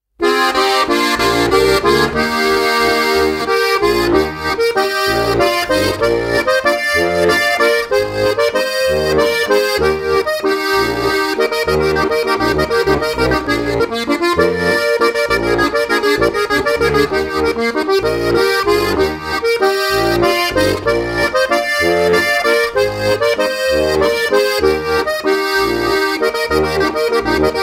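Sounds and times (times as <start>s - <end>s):
waltz music: 0.2s - 27.6s.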